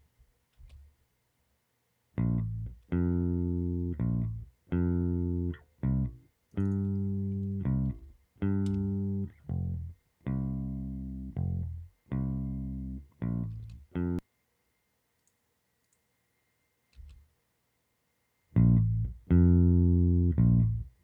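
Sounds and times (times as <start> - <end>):
bass with wave-shaping and EQ: 2.2 - 14.2, 18.5 - 21.0.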